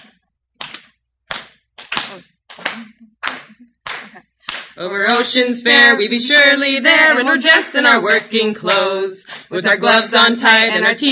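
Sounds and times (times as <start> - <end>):
sharp hand claps: 0.0 - 4.8
speech: 2.1 - 11.0.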